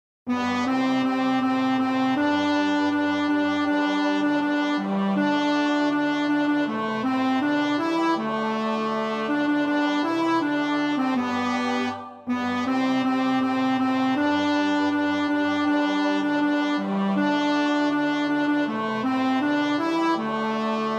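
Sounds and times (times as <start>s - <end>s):
tenor part of a madrigal: 0.3s - 20.9s.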